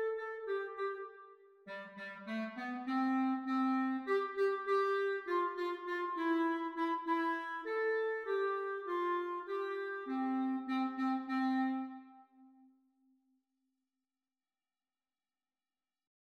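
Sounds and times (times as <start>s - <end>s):
clarinet duet: 0.0s - 12.7s.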